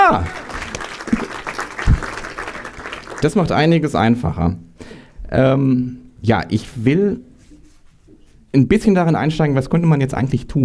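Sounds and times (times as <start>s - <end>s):
audience applause: 0.0s - 3.5s
speech: 3.2s - 4.7s, 5.3s - 7.3s, 8.5s - 10.6s.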